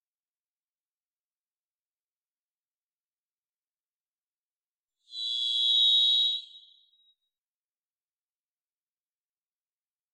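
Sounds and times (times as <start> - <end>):
varied thrush singing a buzzy whistle: 5.1 - 7.0.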